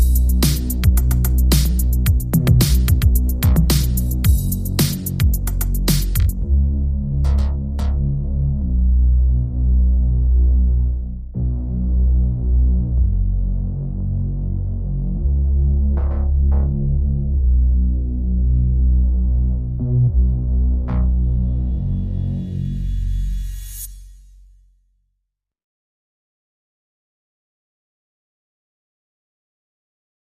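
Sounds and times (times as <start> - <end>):
drums: 0.0 - 6.4
bass: 0.0 - 25.3.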